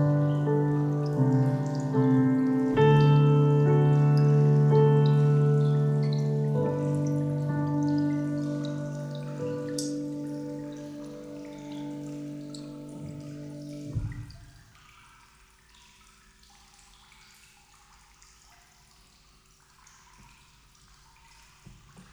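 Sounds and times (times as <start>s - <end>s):
piano improvisation: 0.0s - 14.4s.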